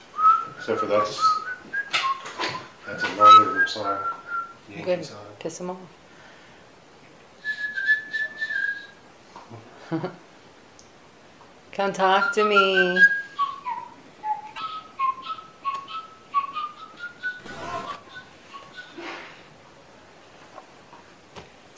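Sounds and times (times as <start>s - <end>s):
whistle: 0.2s - 4.6s, 7.4s - 9.0s, 12.2s - 19.3s.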